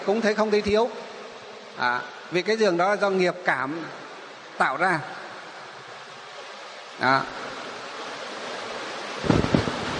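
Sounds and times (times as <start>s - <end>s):
speech: 0.0s - 1.1s, 1.8s - 4.0s, 4.6s - 5.2s, 7.0s - 7.4s
heavy rain: 0.0s - 9.9s
low rumbling thumps: 9.2s - 9.9s.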